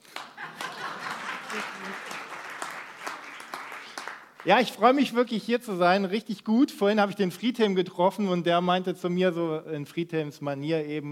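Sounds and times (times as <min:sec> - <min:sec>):
audience applause: 0:00.0 - 0:04.8
laughter: 0:00.3 - 0:02.3
speech: 0:01.5 - 0:02.1, 0:04.4 - 0:11.1.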